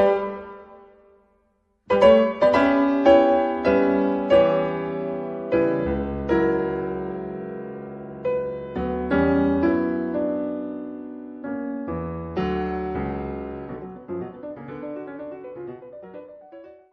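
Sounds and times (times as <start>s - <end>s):
allegro piano piece played by a female concert pianist: 0.0s - 1.1s, 1.9s - 16.9s.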